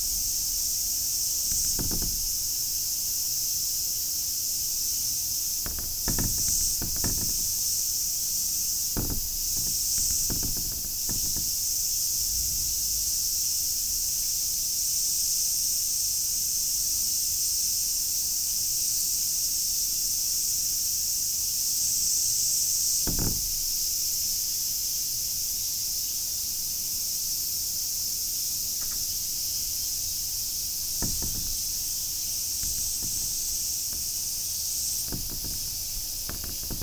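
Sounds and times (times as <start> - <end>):
cicadas buzzing: 0.0 - 36.8
soft knocks and taps: 1.5 - 2.7, 5.6 - 7.7, 8.9 - 11.7, 23.1 - 23.8, 30.7 - 36.8.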